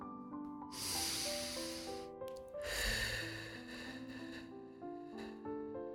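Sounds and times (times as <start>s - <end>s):
soft sustained music tones: 0.0s - 5.9s
slow deep breath through the nose during a guided breathing exercise: 0.8s - 2.0s, 2.6s - 5.4s.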